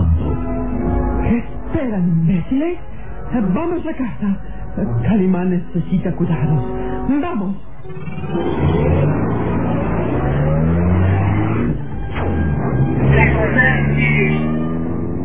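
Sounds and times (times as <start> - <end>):
car driving away: 0.0 - 1.2, 7.8 - 15.2
speech: 1.8 - 8.5.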